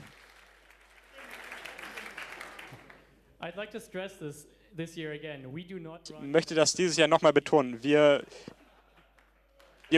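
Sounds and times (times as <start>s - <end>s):
audience applause: 0.0s - 3.1s, 9.6s - 9.9s
speech: 3.4s - 8.6s.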